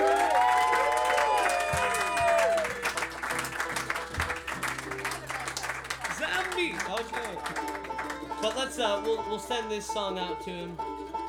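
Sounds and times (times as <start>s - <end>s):
whoops and cheers: 0.0s - 3.0s
crowd applauding: 0.0s - 8.9s
speech: 8.4s - 10.9s.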